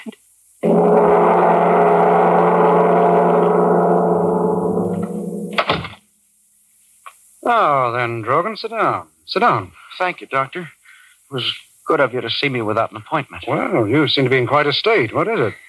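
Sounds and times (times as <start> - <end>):
loud steady mechanical roar and whine of plunging elevator: 0.6 - 5.7
elevator falling down the shaft: 0.6 - 6.0
sharp crash of elevator: 0.6 - 6.0
speech: 7.5 - 15.6.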